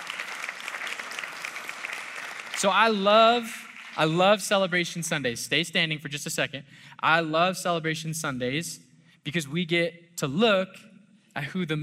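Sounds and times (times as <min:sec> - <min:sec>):
round of applause: 0:00.0 - 0:04.3
speech: 0:02.6 - 0:11.8.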